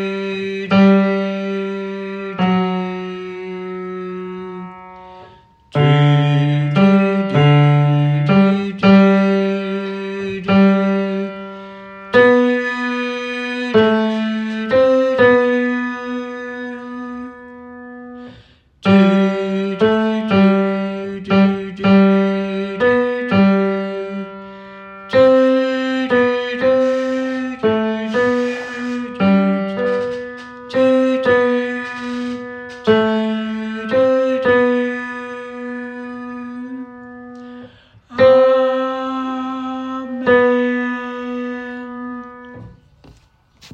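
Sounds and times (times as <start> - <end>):
tenor voice singing SATB hymns: 0.0 - 42.8.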